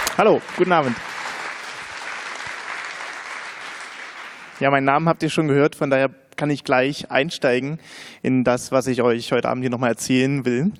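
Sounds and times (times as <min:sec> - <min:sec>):
audience applause: 0:00.0 - 0:04.6
speech: 0:00.2 - 0:01.1, 0:04.6 - 0:10.7.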